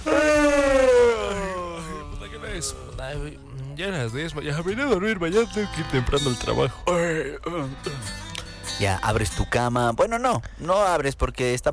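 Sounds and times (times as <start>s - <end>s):
person yawning: 0.0s - 2.2s
speech: 3.8s - 11.7s.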